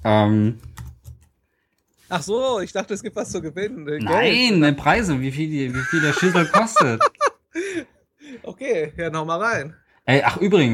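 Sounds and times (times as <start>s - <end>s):
speech: 0.0s - 0.8s, 2.1s - 7.1s, 8.6s - 10.7s
typing on a computer keyboard: 0.4s - 1.8s
laughter: 5.7s - 7.8s.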